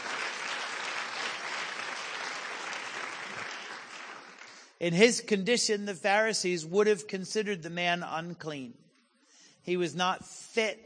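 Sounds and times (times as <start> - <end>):
audience clapping: 0.0 - 4.8
speech: 4.8 - 8.8, 9.6 - 10.8.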